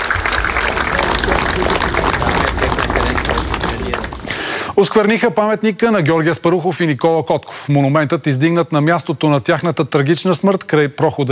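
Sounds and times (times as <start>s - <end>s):
crowd applauding honoring two men: 0.0s - 5.1s
speech: 4.8s - 11.3s.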